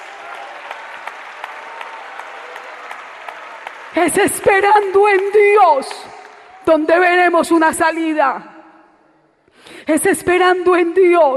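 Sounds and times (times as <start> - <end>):
church congregation applause giving praise: 0.0 - 7.2
speech: 4.0 - 8.5, 9.9 - 11.3.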